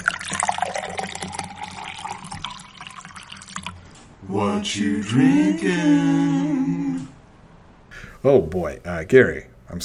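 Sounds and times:
water pouring into a glass: 0.0s - 3.8s
speech: 4.3s - 7.1s, 8.2s - 9.8s.

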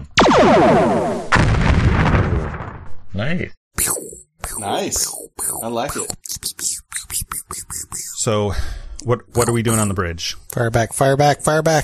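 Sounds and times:
space video game gunfire shooting down shuttles: 0.2s - 2.6s
speech: 3.3s - 3.6s, 4.6s - 6.2s, 8.2s - 11.8s.

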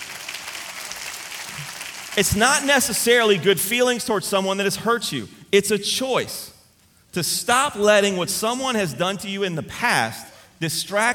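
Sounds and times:
audience clapping hands: 0.0s - 2.7s
speech: 1.6s - 6.5s, 7.1s - 11.1s.

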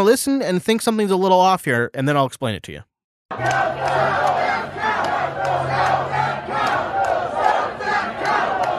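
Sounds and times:
speech: 0.0s - 4.2s
Trump supporter protest groups chanting: 3.3s - 8.7s.

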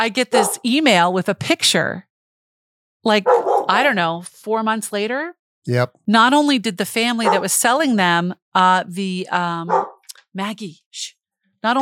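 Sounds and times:
speech: 0.0s - 2.1s, 3.0s - 11.8s
border collie barking and yelping: 0.3s - 0.7s, 3.3s - 3.8s, 7.2s - 7.5s, 9.7s - 10.0s.

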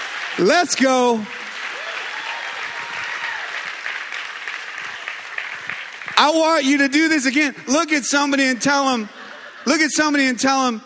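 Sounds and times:
audience applause: 0.0s - 7.2s
speech: 0.4s - 1.4s, 6.2s - 10.8s
laughter: 8.8s - 10.3s.

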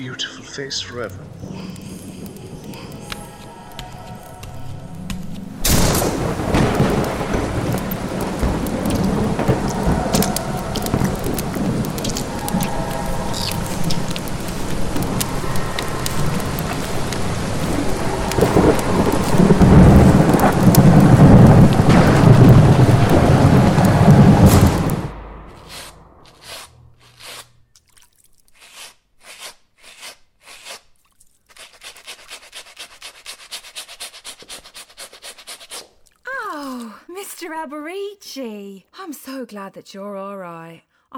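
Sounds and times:
speech: 0.0s - 2.0s, 39.1s - 41.1s
steady rain in a heavy thunderstorm: 0.0s - 27.4s
faint drips and patters: 0.8s - 24.9s, 25.7s - 29.5s, 30.4s - 37.0s
loud rolling rumble of thunder: 0.8s - 27.0s.

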